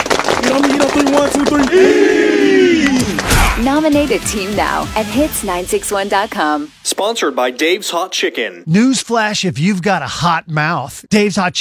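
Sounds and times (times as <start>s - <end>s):
football team clapping in unison: 0.0s - 3.3s
speech: 1.0s - 2.2s, 3.6s - 11.5s
voices shouting along: 1.6s - 3.3s
loud sustained collective yell: 1.6s - 3.4s.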